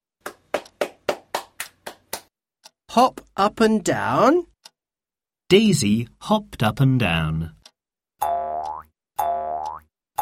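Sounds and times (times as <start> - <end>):
hands clapping: 0.2 - 2.3
speech: 2.9 - 4.5, 5.5 - 7.6.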